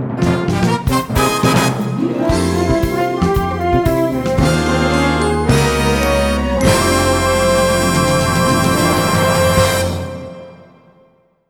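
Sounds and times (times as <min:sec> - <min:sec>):
fanfare: 0:00.2 - 0:11.1.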